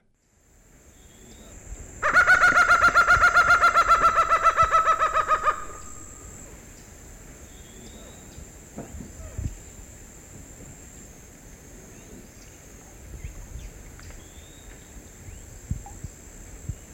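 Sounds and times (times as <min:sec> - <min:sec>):
laughing falcon calls: 0:02.0 - 0:06.5.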